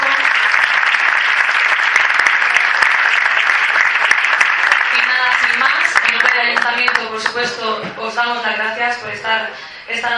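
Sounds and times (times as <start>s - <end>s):
audience applause: 0.0s - 7.3s
speech: 7.4s - 10.1s.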